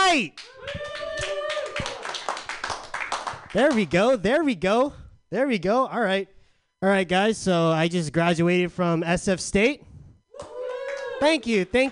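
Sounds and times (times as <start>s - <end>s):
speech: 0.2s - 0.9s, 3.6s - 10.5s, 11.2s - 11.9s
scattered clapping from a small crowd: 0.3s - 4.2s, 10.4s - 11.9s
person whooping: 0.4s - 2.2s, 10.3s - 11.5s.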